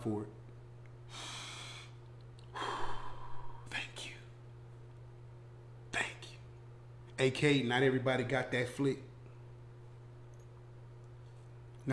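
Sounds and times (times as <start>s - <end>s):
speech: 0.0s - 0.4s, 7.2s - 9.1s
church congregation breathing in and out together: 1.1s - 3.7s.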